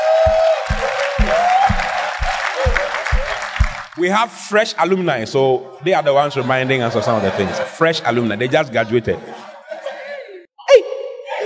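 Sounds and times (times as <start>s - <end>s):
audience clapping and cheering: 0.0s - 4.1s
speech: 4.0s - 9.4s
laughter: 6.0s - 10.5s.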